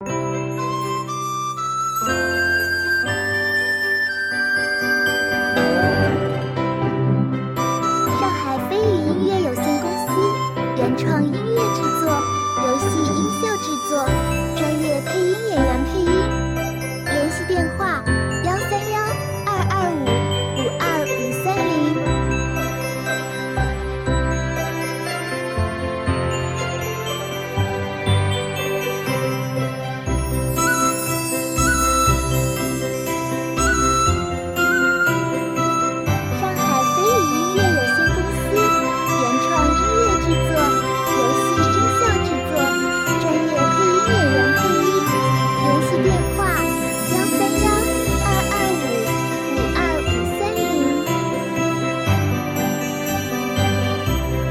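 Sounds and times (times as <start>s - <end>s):
relaxed cheerful hopeful Chinese-style music: 0.0s - 54.5s.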